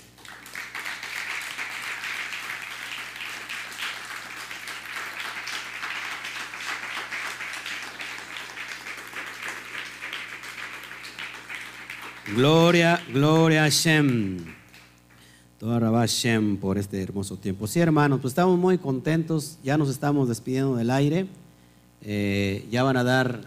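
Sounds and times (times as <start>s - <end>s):
crowd applause: 0.0s - 14.9s
speech: 12.3s - 14.6s, 15.6s - 21.4s, 22.0s - 23.4s.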